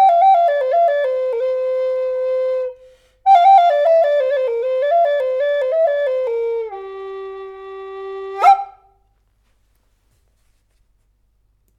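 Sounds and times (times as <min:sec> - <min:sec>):
NAF flute in G tuned to 440 Hz: 0:00.0 - 0:08.8.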